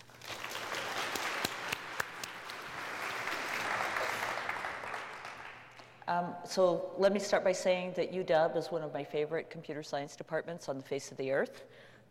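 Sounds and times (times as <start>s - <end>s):
audience applause welcoming a speaker to a computer science talk: 0.0s - 5.9s
speech: 6.1s - 11.9s.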